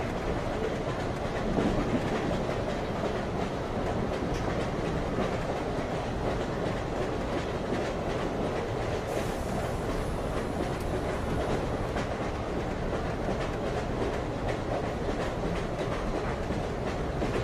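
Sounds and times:
train rumbling in Frankfurt, Germany: 0.0 - 17.4.

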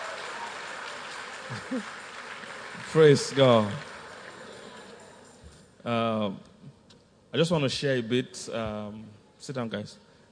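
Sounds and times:
audience clapping: 0.0 - 5.4
speech: 1.5 - 2.0, 2.7 - 3.9, 5.8 - 6.5, 7.3 - 10.0.

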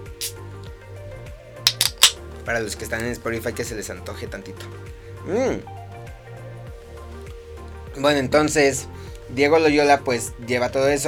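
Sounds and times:
beer bottle being opened: 1.7 - 2.2
speech: 2.4 - 5.8, 8.0 - 11.0.

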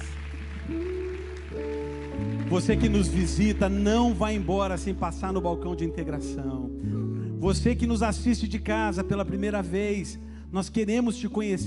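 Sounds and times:
audience clapping hands in praise: 0.0 - 5.4
speech: 2.5 - 11.6.

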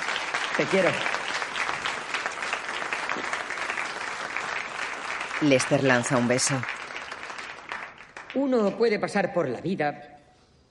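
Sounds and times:
audience applause: 0.0 - 8.6
speech: 0.6 - 1.2, 5.4 - 6.8, 8.4 - 10.1.

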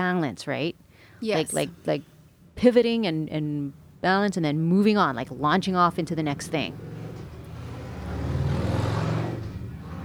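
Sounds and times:
speech: 0.0 - 6.9
motorcycle accelerating away: 6.0 - 10.0.

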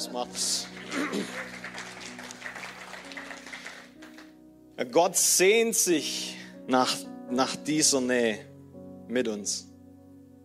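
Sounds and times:
speech: 0.0 - 1.8, 4.8 - 8.5, 9.1 - 9.7
applause: 0.2 - 4.3.

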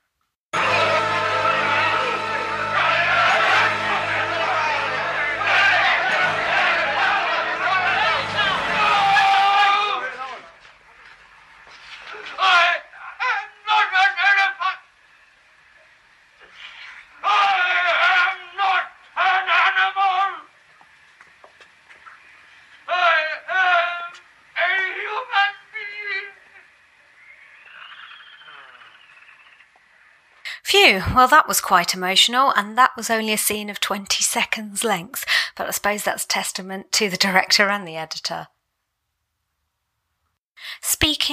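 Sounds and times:
crowd chanting: 0.6 - 10.6, 12.0 - 14.9, 17.1 - 20.5, 22.8 - 26.7
speech: 30.9 - 38.6.

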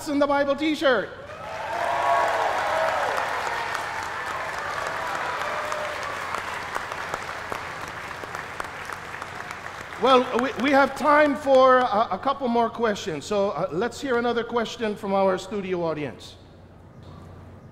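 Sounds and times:
speech: 0.0 - 1.3, 10.0 - 16.4
audience applause: 1.3 - 11.3.

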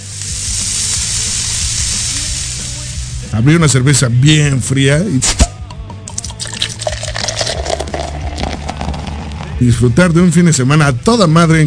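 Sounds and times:
meat sizzling on charcoal grill: 0.0 - 3.6, 7.2 - 9.8
speech: 3.3 - 5.5, 9.6 - 11.6.

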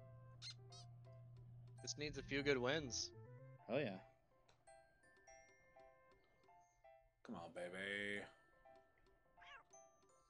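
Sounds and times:
speech: 1.8 - 4.1, 7.2 - 8.4
cartoonish cat meow from a slot machine video game: 9.4 - 9.7.

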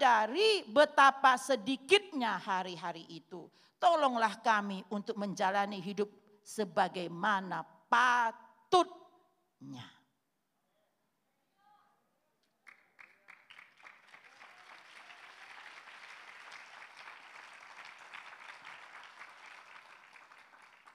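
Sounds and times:
speech: 0.0 - 9.0, 9.6 - 10.0
weak audience applause: 12.6 - 20.9.

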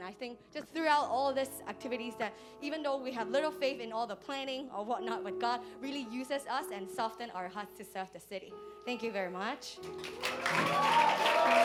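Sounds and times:
speech: 0.1 - 11.6
audience applause: 10.0 - 11.6.

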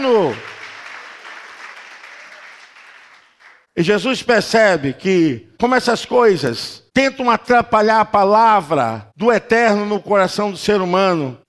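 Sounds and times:
speech: 0.0 - 0.5, 3.8 - 11.4
audience applauding: 0.0 - 3.7.

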